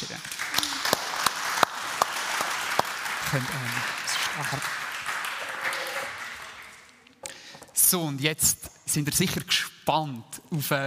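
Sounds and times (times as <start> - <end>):
audience applause: 0.0 - 7.0
speech: 3.3 - 4.8, 7.9 - 10.8.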